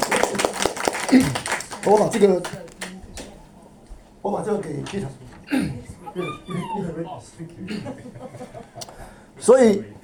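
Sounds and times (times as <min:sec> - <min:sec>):
audience clapping: 0:00.0 - 0:03.4
speech: 0:01.1 - 0:02.6, 0:04.2 - 0:10.0
laughter: 0:05.8 - 0:09.0.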